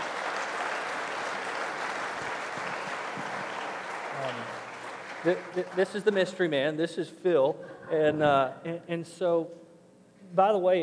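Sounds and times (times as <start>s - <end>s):
audience applauding a speaker to the platform: 0.0s - 6.4s
speech: 5.2s - 9.6s, 10.3s - 10.8s.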